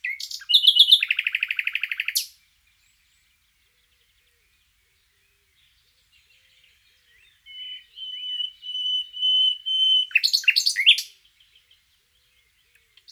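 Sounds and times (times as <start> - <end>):
common nightingale Luscinia megarhynchos song: 0.0 - 13.1.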